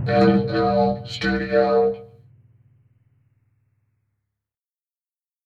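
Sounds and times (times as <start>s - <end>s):
phonk music: 0.1s - 2.1s.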